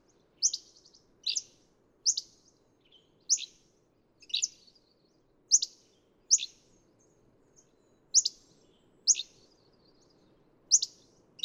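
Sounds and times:
Hammond's flycatcher calling with sharp chips and burry notes: 0.4s - 2.4s, 3.3s - 3.6s, 4.2s - 4.7s, 5.5s - 6.6s, 8.2s - 8.4s, 9.1s - 9.4s, 10.7s - 11.4s.

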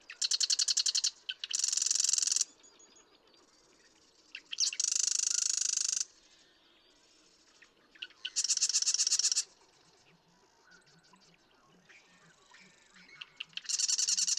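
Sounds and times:
Marsh Wren song buzzing rattle: 0.2s - 2.5s, 4.5s - 6.1s, 8.2s - 9.5s, 13.6s - 14.3s.

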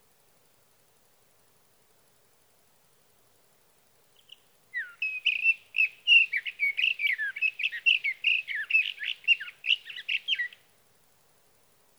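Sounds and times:
faint hiss: 0.0s - 11.9s
sage thrasher warbling song: 4.2s - 10.6s.

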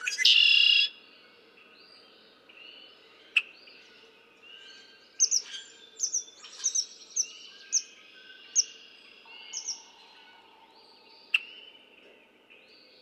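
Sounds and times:
red-winged blackbird trilling and chattering: 0.0s - 0.9s, 5.2s - 7.9s, 9.4s - 10.0s.

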